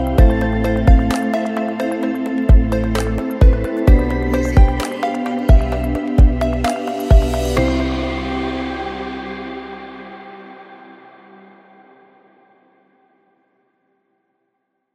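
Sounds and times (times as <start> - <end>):
ambient electronic music: 0.0 - 11.9.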